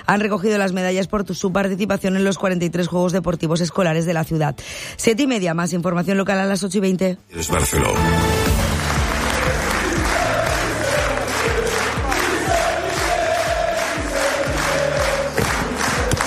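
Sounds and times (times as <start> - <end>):
speech: 0.1 - 8.3
crowd chanting at the Palacio del Eliseo in Paris: 8.5 - 16.2.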